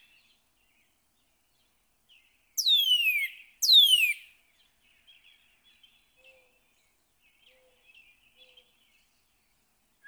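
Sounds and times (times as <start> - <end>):
Northern cardinal singing slurred whistles: 2.6 - 4.3.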